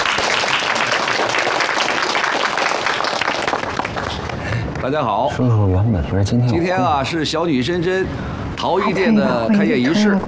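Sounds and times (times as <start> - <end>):
crowd applause: 0.0 - 4.7
speech: 4.8 - 10.2.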